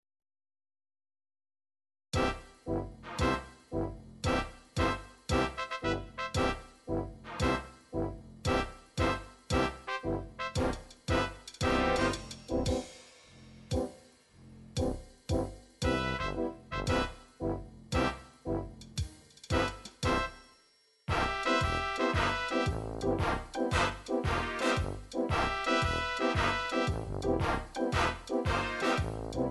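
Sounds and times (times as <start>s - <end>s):
PSR9000 MIDI keyboard music: 2.2s - 13.0s, 13.7s - 14.1s, 14.8s - 20.4s, 21.1s - 29.4s.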